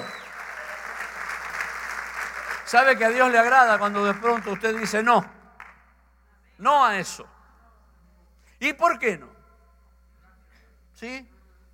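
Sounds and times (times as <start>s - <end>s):
audience applauding: 0.0s - 5.8s
speech: 2.7s - 5.4s, 6.6s - 7.3s, 8.6s - 9.3s, 11.0s - 11.3s.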